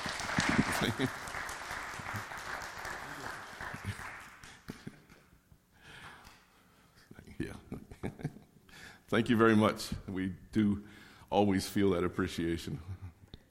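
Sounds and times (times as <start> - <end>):
round of applause: 0.0 - 5.0
speech: 0.8 - 1.3, 9.1 - 12.9.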